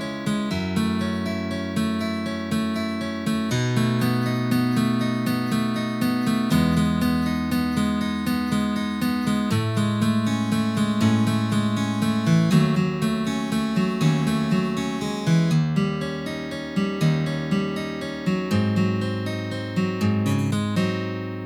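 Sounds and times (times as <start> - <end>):
film melody on guitar: 0.0 - 21.4.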